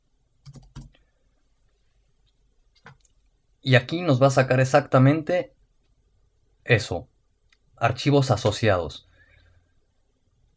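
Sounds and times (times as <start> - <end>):
faint computer keyboard clicks typing an application name into a folder search: 0.4 - 1.0
speech: 3.6 - 5.6, 6.7 - 7.1, 7.8 - 9.1.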